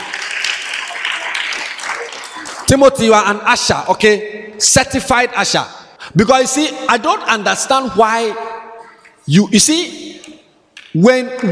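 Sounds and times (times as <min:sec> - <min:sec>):
audience clapping at a children's graduation ceremony: 0:00.0 - 0:03.4
speech: 0:02.7 - 0:08.4, 0:09.3 - 0:10.0, 0:10.9 - 0:11.5.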